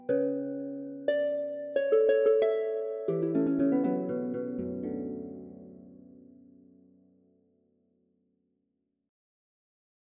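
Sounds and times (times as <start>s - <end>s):
harp: 0.0s - 7.2s.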